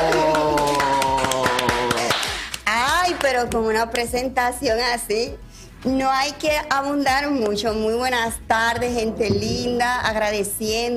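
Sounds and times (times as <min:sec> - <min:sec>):
applause: 0:00.0 - 0:03.3
speech: 0:03.3 - 0:10.9.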